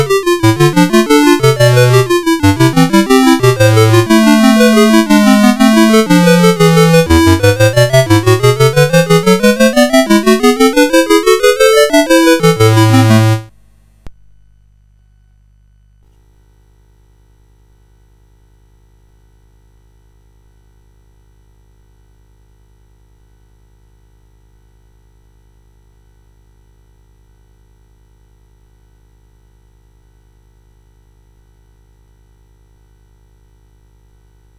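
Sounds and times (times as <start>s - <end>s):
gigue on CSG8580R5 sound chip: 0.0s - 13.5s.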